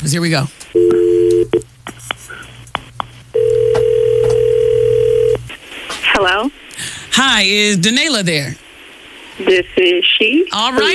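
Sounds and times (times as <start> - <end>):
speech: 0.0 - 1.7, 6.2 - 6.6, 7.2 - 8.6, 9.4 - 10.9
telephone ringing tone on an outgoing call: 0.8 - 1.6, 3.4 - 5.4
telephone dialing beeps and clicks: 3.4 - 5.4.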